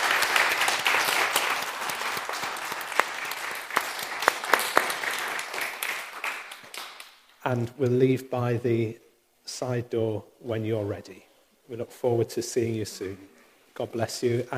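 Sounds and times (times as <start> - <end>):
audience applauding: 0.0 - 7.2
speech: 7.5 - 14.5.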